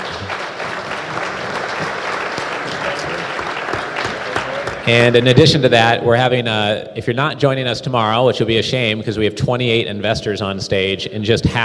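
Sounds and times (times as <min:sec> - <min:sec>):
round of applause: 0:00.0 - 0:05.7
speech: 0:04.8 - 0:11.6.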